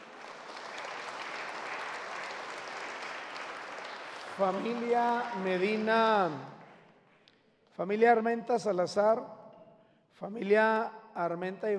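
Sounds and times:
audience applauding: 0.0 - 6.8
speech: 4.4 - 6.6, 7.8 - 9.4, 10.2 - 11.7.

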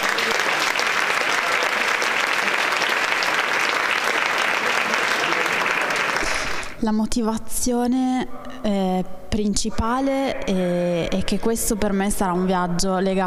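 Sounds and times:
audience applause: 0.0 - 6.8
speech: 6.8 - 13.2.

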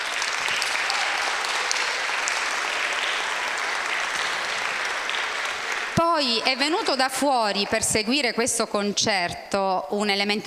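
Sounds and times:
audience applause: 0.0 - 7.6
speech: 6.2 - 10.4.

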